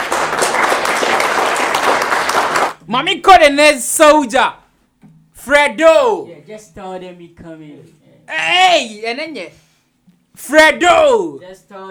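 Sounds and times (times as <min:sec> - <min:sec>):
several hands clapping: 0:00.0 - 0:02.8
speech: 0:02.9 - 0:04.6, 0:05.4 - 0:09.6, 0:10.4 - 0:11.8.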